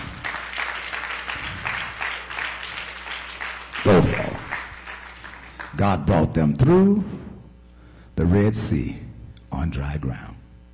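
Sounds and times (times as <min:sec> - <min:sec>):
clapping hands: 0:00.0 - 0:05.8
speech: 0:05.8 - 0:07.2, 0:08.2 - 0:09.0, 0:09.6 - 0:10.3.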